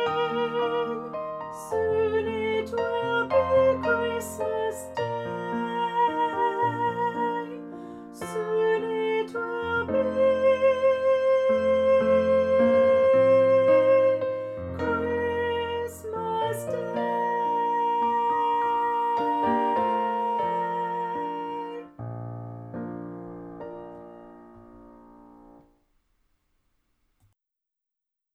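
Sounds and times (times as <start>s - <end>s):
vocals: 0.0s - 22.2s.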